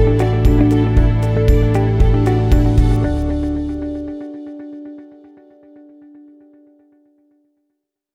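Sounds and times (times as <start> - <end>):
inspirational corporate business music: 0.0 - 6.2.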